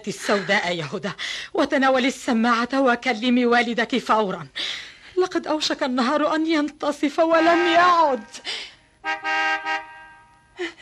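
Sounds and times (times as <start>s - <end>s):
speech: 0.0s - 9.7s
car horn honking as the father's car arrives: 7.3s - 8.4s, 9.0s - 10.6s.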